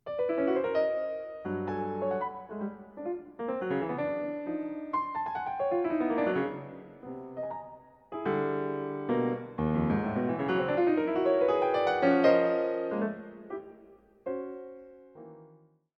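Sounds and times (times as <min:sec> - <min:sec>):
piano: 0:00.0 - 0:15.9.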